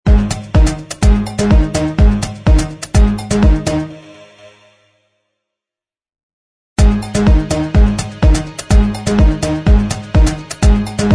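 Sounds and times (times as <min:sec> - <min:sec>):
instrumental music: 0:00.1 - 0:05.0, 0:06.8 - 0:11.1.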